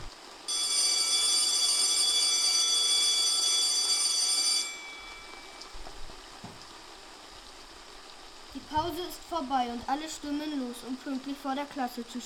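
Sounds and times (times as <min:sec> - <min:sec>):
school bell ringing: 0:00.5 - 0:06.2
speech: 0:09.0 - 0:12.2.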